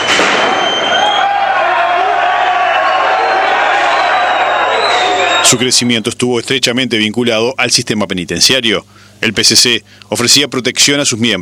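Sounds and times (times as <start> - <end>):
large crowd applauding and cheering: 0.0 - 5.9
shrill whistles: 0.0 - 6.0
speech: 5.5 - 11.3.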